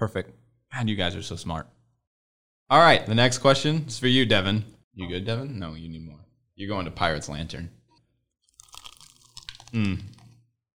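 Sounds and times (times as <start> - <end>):
speech: 0.0 - 1.8, 2.7 - 7.8, 9.7 - 10.2
biting into crunchy chicken: 8.5 - 10.3.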